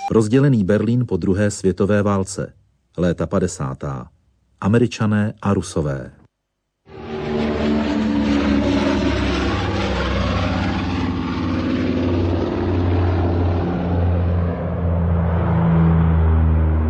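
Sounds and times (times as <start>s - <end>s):
speech: 0.1s - 6.2s
aircraft engine droning at Tempelhof airport in West Berlin: 6.9s - 16.8s.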